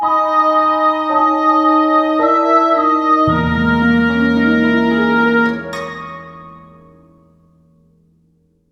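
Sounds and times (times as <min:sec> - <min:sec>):
sad or mysterious orchestral music: 0:00.8 - 0:07.3.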